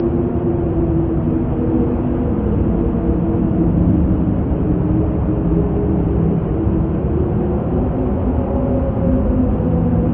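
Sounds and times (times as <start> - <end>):
wind: 0.0 - 10.1.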